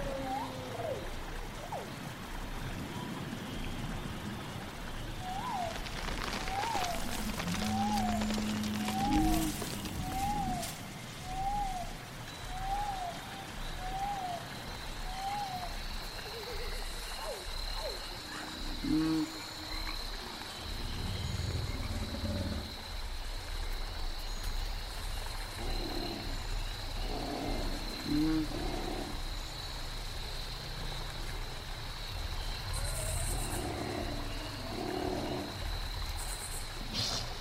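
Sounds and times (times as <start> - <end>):
steady hiss: 0.0 - 37.3.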